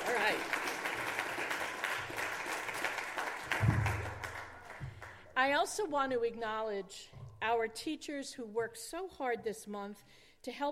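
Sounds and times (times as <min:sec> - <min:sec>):
crowd applauding: 0:00.0 - 0:05.2
speech: 0:05.4 - 0:10.7.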